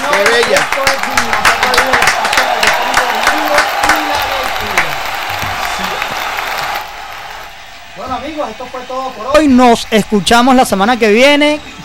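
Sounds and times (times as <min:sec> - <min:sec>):
audience applause and cheering: 0:00.0 - 0:11.2
speech: 0:08.6 - 0:11.8.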